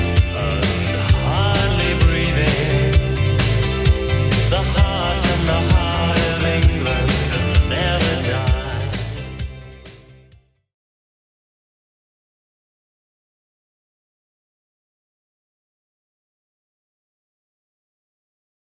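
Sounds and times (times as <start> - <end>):
80s style beat: 0.0 - 10.2.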